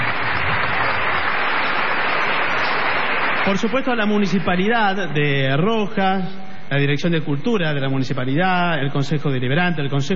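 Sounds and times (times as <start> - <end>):
audience applause: 0.0 - 4.5
speech: 3.4 - 10.1.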